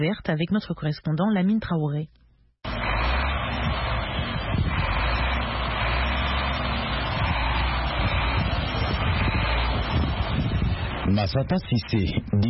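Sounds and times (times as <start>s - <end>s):
speech: 0.0s - 2.2s, 11.1s - 12.4s
heavy truck engine rumbling: 2.6s - 12.4s.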